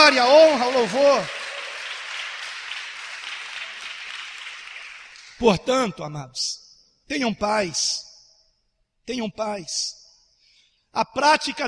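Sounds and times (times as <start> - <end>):
audience applauding: 0.0 - 5.4
speech: 0.1 - 1.4, 5.4 - 8.1, 9.1 - 10.0, 10.9 - 11.6.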